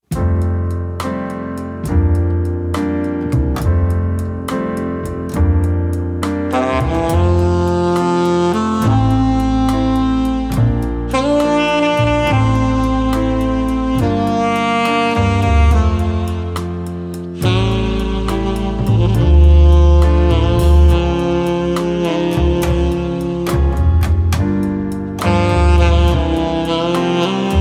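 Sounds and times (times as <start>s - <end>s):
dinner music: 0.0s - 27.6s.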